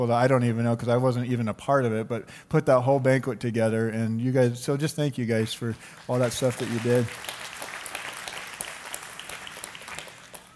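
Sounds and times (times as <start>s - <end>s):
speech: 0.0s - 7.4s
audience clapping: 5.8s - 10.5s.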